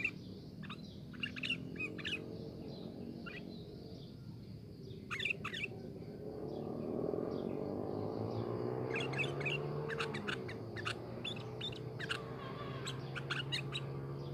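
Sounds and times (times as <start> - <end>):
sooty-headed bulbul song phrases: 0.0 - 14.3.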